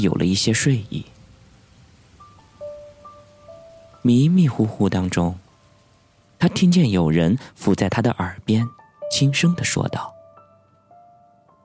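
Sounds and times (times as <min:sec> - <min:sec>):
speech: 0:00.0 - 0:01.1, 0:04.0 - 0:05.4, 0:06.4 - 0:10.1
rain falling outside: 0:00.0 - 0:11.6.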